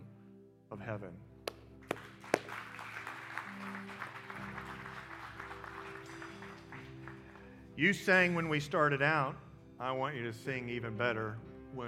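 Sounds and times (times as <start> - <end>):
speech: 0.7 - 1.3, 7.8 - 11.8
audience applauding: 1.8 - 7.7.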